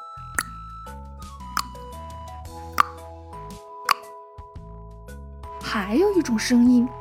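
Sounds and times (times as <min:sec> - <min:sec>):
tongue clicking: 0:02.8 - 0:03.0
speech: 0:05.7 - 0:06.9.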